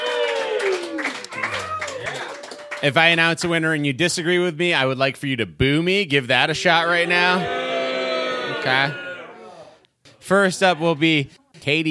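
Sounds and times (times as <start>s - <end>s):
audience at a live show cheering on request: 0.0s - 2.8s, 6.9s - 9.7s
hand claps: 0.0s - 2.9s
speech: 2.8s - 7.6s, 8.5s - 9.0s, 10.3s - 11.9s.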